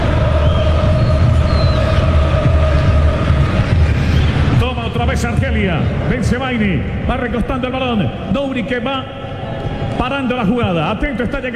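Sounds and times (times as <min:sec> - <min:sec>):
Argentine football fans chanting in a stadium: 0:00.0 - 0:05.3
speech: 0:05.2 - 0:11.5.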